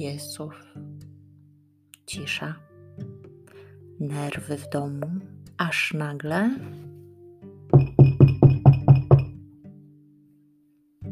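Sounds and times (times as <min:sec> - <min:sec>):
speech: 0:00.0 - 0:01.0, 0:02.1 - 0:03.1, 0:04.0 - 0:06.8
knocking on a door: 0:07.7 - 0:09.4.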